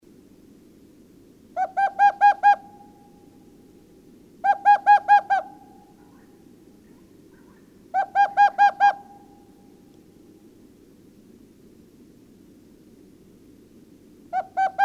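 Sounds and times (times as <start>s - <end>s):
owl hooting: 1.6s - 3.4s, 4.4s - 9.8s, 14.3s - 14.8s.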